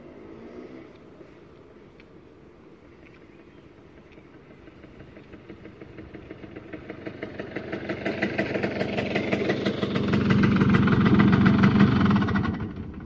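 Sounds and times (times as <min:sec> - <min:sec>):
Vespa scooter engine: 0:03.4 - 0:13.0.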